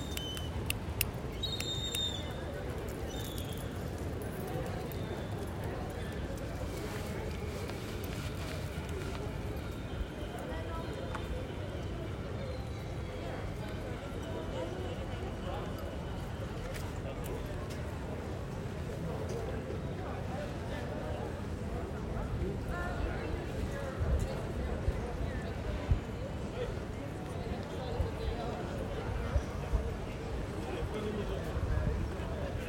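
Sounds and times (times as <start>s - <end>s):
street ambience in Rotterdam: 0.0s - 32.6s
wind in Rotterdam street: 0.0s - 32.6s.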